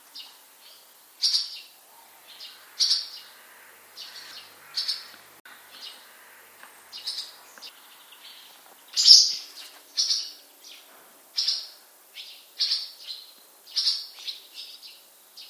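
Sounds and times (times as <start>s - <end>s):
bird calling with short high chirping notes: 0.1s - 15.4s.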